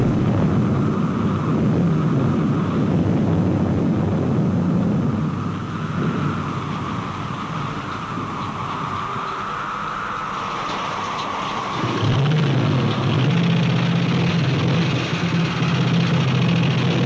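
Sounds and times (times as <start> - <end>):
thunderstorm: 0.0 - 17.0.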